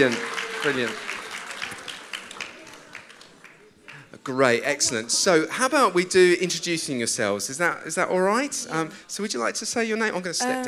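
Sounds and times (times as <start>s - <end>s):
speech: 0.0s - 1.1s, 4.2s - 10.6s
audience applause: 0.0s - 4.6s.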